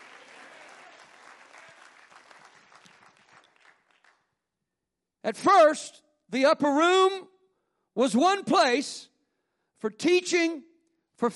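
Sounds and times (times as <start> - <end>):
audience clapping hands: 0.0 - 4.4
speech: 5.3 - 7.3, 8.0 - 9.1, 9.8 - 11.3.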